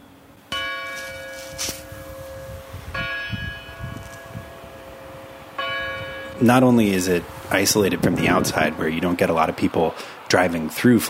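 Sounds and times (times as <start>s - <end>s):
church bells ringing: 0.5s - 7.3s
speech: 1.6s - 1.8s, 6.4s - 11.0s.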